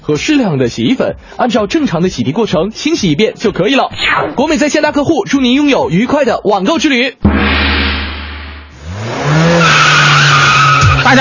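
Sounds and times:
speech: 0:00.0 - 0:07.3
drifting car engine roaring: 0:07.2 - 0:11.1
tires skidding: 0:08.7 - 0:11.1.

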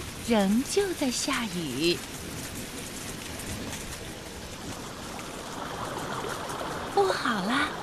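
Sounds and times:
rising floodwater flowing in a room: 0:00.0 - 0:07.8
speech: 0:00.3 - 0:02.4, 0:07.0 - 0:07.8.

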